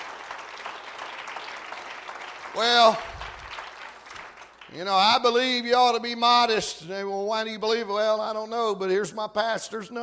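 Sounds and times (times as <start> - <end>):
audience clapping hands: 0.0 - 5.6
speech: 2.6 - 3.1, 4.7 - 10.0.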